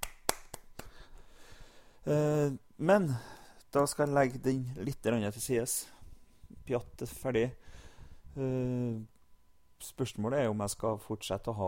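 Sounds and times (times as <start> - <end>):
lone person clapping: 0.0 - 1.1
speech: 2.0 - 6.0, 6.7 - 7.8, 8.4 - 9.1, 9.8 - 11.6.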